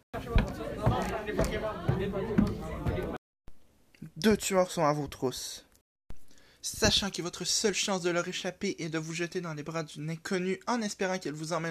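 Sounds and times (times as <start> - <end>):
walking through a crowd: 0.0 - 3.2
speech: 4.2 - 5.7, 6.6 - 11.6.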